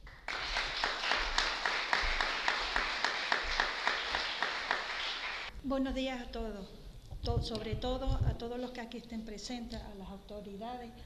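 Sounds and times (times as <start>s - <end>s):
rhythmic audience clapping: 0.0s - 5.5s
speech: 5.7s - 11.0s.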